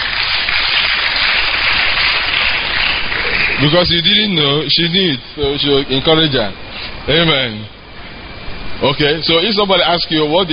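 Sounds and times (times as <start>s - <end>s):
audience clapping: 0.0s - 4.3s
speech: 3.6s - 7.8s, 8.8s - 10.5s.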